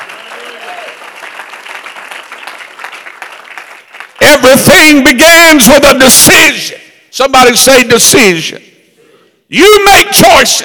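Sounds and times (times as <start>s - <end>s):
audience clapping hands: 0.0s - 4.3s
speech: 4.4s - 8.7s, 9.5s - 10.6s.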